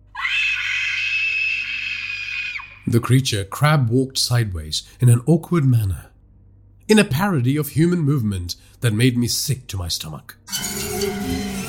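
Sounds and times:
woman screaming in horror: 0.1 - 2.8
speech: 2.9 - 6.1, 6.9 - 11.4.

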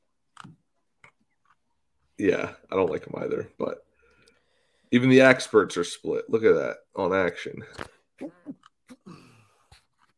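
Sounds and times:
speech: 2.2 - 3.9, 4.9 - 8.4
person sneezing into the microphone: 8.2 - 9.4.

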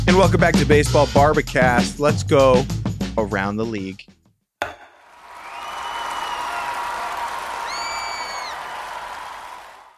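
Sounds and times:
speech: 0.2 - 4.1
large crowd roaring: 5.0 - 9.9.

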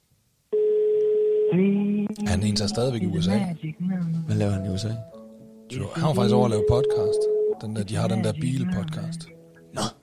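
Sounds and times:
telephone ringing tone on an outgoing call: 0.5 - 2.0, 6.4 - 7.7
speech: 1.5 - 9.9.

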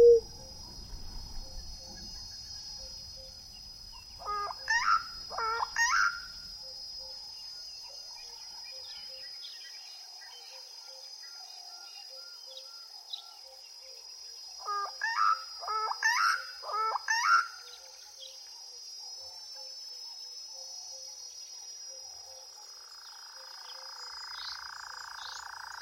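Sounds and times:
sweeping whistled bird calls: 0.0 - 3.4
bright insect-like drone: 0.0 - 25.8.

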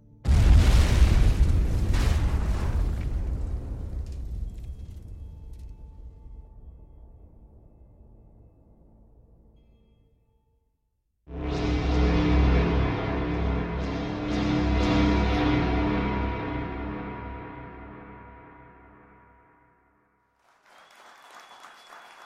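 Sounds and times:
explosive triggered at a gap in a wall: 0.2 - 8.0, 11.3 - 18.5.

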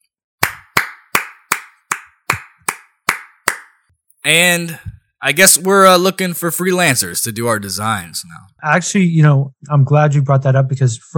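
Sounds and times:
hand clapping: 0.4 - 3.8
speech: 4.2 - 11.1.

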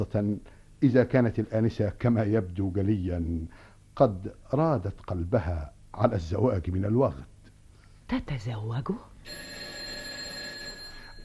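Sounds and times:
speech: 0.0 - 7.3, 8.1 - 9.6
bell ringing to summon servant: 9.3 - 11.2.

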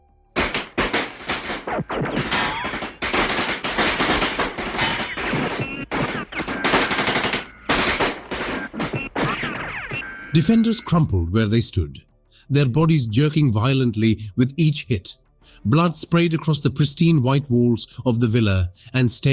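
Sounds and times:
automatic gunfire: 0.4 - 9.6
speech: 1.7 - 2.6, 10.3 - 19.3.

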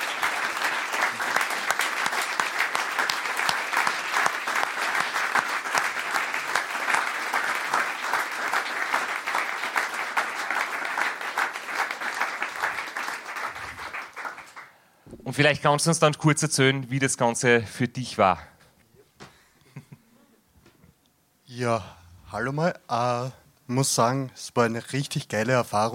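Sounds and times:
audience applause: 0.0 - 14.8
speech: 15.4 - 18.5, 21.6 - 25.9.

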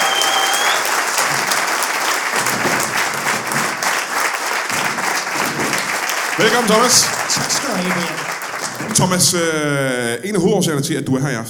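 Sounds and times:
audience applause greeting a comedian at a live talk show in Vejle: 0.0 - 10.0
speech: 6.4 - 8.2, 8.8 - 11.4.

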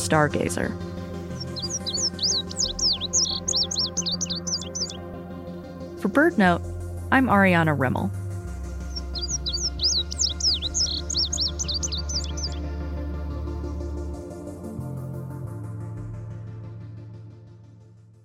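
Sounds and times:
low steady musical drone: 0.0 - 18.1
speech: 0.1 - 0.9, 6.0 - 8.2
Indigo Bunting song: 0.1 - 12.7.

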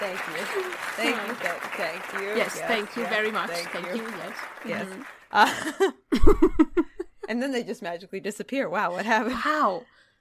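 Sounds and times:
applause added in editing: 0.0 - 5.5
laughter: 0.0 - 7.3
speech: 0.1 - 10.1.

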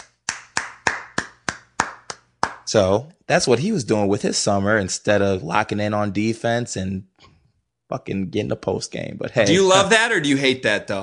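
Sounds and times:
hand clapping: 0.0 - 2.7
speech: 2.7 - 7.3, 7.9 - 11.0.

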